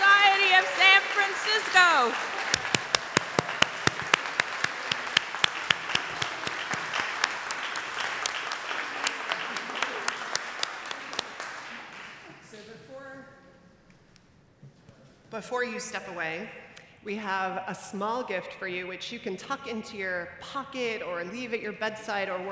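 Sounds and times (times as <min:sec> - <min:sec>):
congregation at the First Unitarian Universalist Society of San Francisco applauding new members: 0:00.0 - 0:12.6
speech: 0:01.5 - 0:02.7, 0:15.4 - 0:22.4.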